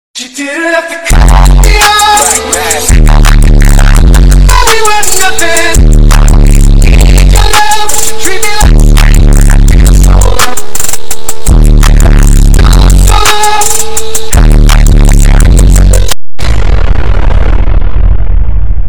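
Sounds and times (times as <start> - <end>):
bass boosted meme music: 1.1 - 18.8.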